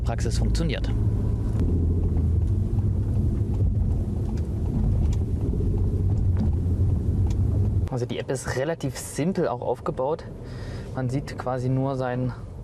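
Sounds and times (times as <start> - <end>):
car driving through city traffic: 0.0 - 12.6
speech: 0.1 - 1.7, 7.9 - 12.4
faint clicks and ticks: 2.0 - 7.9.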